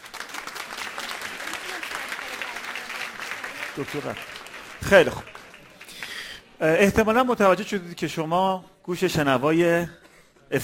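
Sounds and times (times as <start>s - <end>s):
crowd applause: 0.0s - 6.6s
speech: 3.8s - 5.3s, 6.6s - 10.6s.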